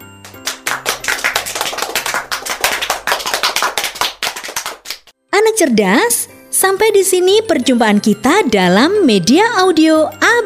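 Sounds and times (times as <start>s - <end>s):
hand claps from a children's audio lesson: 0.0s - 5.1s
speech: 5.6s - 10.4s.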